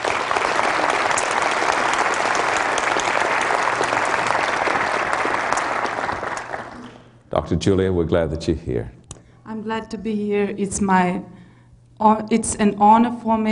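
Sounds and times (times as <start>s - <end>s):
church audience applause welcoming a guest speaker: 0.0s - 7.2s
speech: 7.5s - 9.0s, 9.6s - 11.4s, 12.0s - 13.5s.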